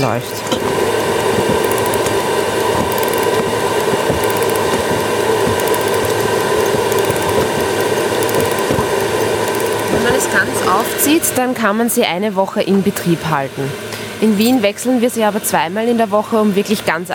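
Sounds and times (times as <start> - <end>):
speech: 0.0 - 1.6, 10.2 - 17.1
ticking clockwork of a pollen trap: 0.7 - 11.4.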